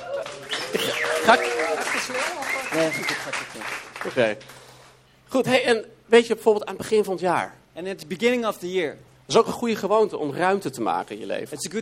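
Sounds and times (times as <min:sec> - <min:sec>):
audience applause: 0:00.0 - 0:04.4
speech: 0:00.7 - 0:04.6, 0:05.3 - 0:11.8.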